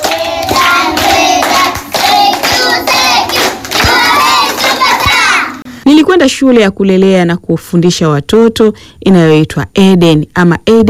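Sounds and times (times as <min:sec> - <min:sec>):
children at a daycare centre in Dar es Salaam clapping for classmates: 0:00.0 - 0:05.6
speech: 0:06.0 - 0:10.8.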